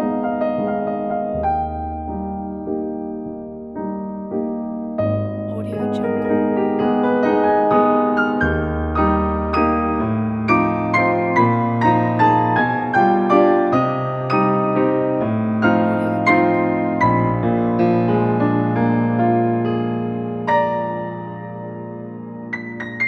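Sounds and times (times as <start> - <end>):
classical piano: 0.0 - 23.0.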